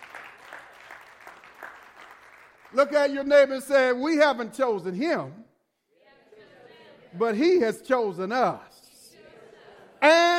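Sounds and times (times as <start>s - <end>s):
audience hand clapping: 0.0s - 3.3s
speech: 2.7s - 5.4s, 7.1s - 8.7s.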